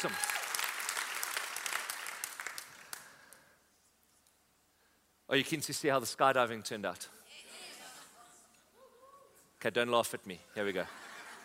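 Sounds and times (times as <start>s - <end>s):
speech: 0.0s - 0.3s, 5.3s - 7.2s, 9.6s - 11.0s
audience round of applause: 0.0s - 3.1s
laughter: 10.7s - 11.4s.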